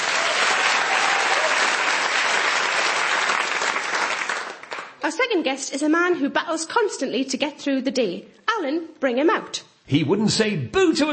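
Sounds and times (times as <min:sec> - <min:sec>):
audience applause: 0:00.0 - 0:05.0
speech: 0:05.1 - 0:11.1.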